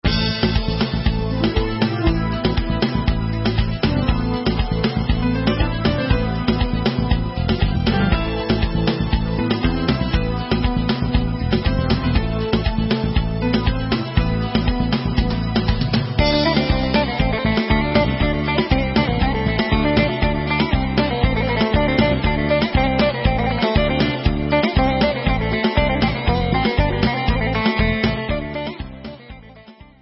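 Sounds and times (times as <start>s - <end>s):
instrumental music: 0.0s - 29.9s.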